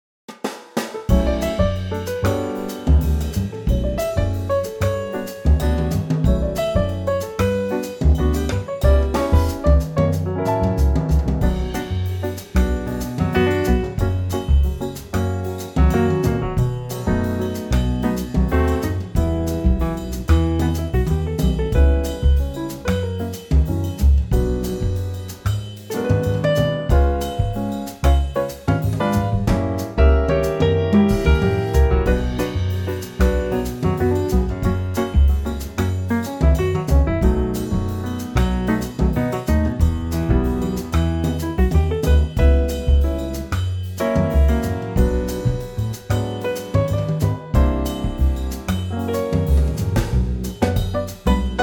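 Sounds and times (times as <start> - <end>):
bossa nova backing track in B minor: 0.8 - 51.6.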